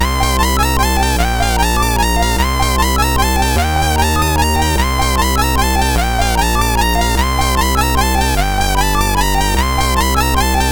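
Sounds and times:
guffaw on a SID MOS6581R3 chip: 0:00.0 - 0:10.7.

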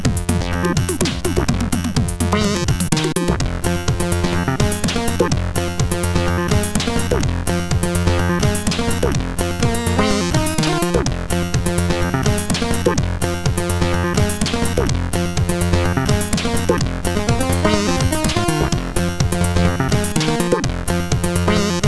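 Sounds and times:
main tune played on a CSG8580R5 sound chip: 0:00.0 - 0:21.8.

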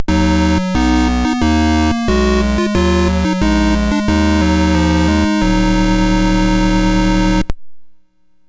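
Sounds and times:
MOS 6581R2 SID chip music: 0:00.0 - 0:07.5.

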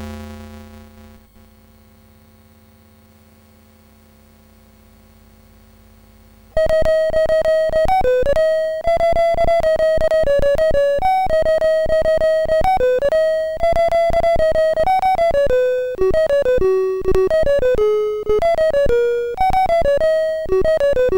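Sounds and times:
chiptune bells on a MOS6581R2 sound chip: 0:06.6 - 0:21.1.

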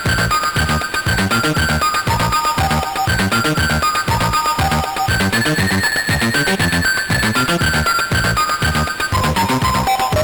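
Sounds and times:
chiptune music on MOS6581R4 SID chip: 0:00.0 - 0:10.2.

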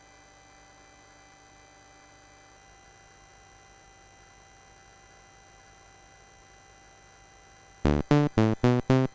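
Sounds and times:
MOS6581R4 chiptune game music: 0:07.9 - 0:09.1.

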